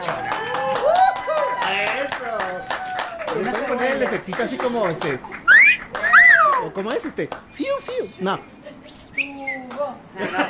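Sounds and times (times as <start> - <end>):
audience applause: 0.0 - 6.8
speech: 4.0 - 5.4, 6.6 - 9.0, 9.8 - 10.4
laughter: 10.2 - 10.4.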